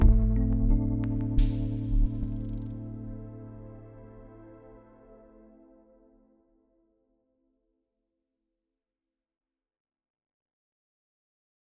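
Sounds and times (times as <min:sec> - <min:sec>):
Rhodes electric piano: 0:00.0 - 0:06.0
synthesizers at slower tempo with retro outro: 0:00.0 - 0:06.8.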